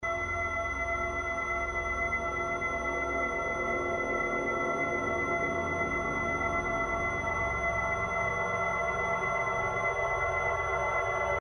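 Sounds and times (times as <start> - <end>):
drone: 0.1 - 11.3.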